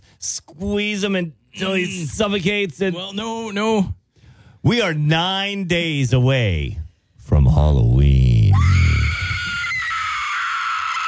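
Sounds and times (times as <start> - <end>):
speech: 0.2 - 4.0, 4.6 - 8.1
short shrill high-pitched scream sound effect: 8.5 - 11.0.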